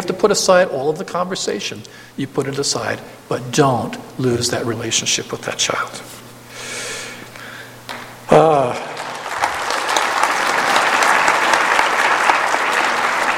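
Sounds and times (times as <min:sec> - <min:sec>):
speech: 0:00.1 - 0:06.2, 0:08.3 - 0:08.9
audience applause: 0:08.3 - 0:13.3.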